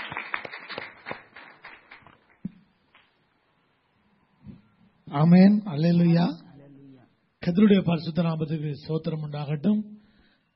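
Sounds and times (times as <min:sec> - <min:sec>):
church congregation clapping hands in welcome of a pastor: 0:00.0 - 0:03.1
speech: 0:05.1 - 0:06.4, 0:07.4 - 0:10.0.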